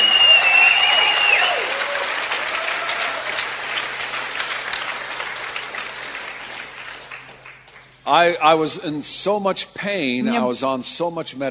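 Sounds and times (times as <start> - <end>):
audience applauding: 0.0 - 8.0
speech: 8.1 - 11.4.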